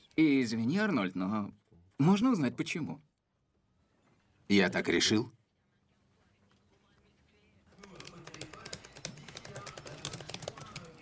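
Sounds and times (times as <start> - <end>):
speech: 0.2 - 3.1, 4.5 - 5.4
typing on a computer keyboard in a bright office: 7.7 - 11.0.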